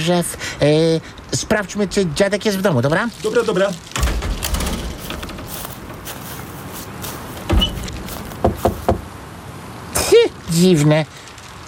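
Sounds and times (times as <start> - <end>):
speech: 0.0 - 4.3, 10.6 - 11.2
low hiss: 0.0 - 11.6
loud knocking on a wooden door: 7.4 - 9.1.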